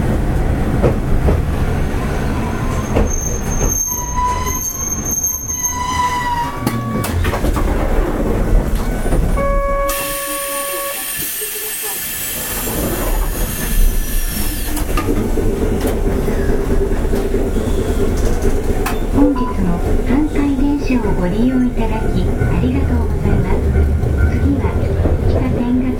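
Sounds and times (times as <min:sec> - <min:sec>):
Hankai Tramway 701-series tram motor and wheels rumble: 0:00.0 - 0:25.9
hiss: 0:11.0 - 0:14.9.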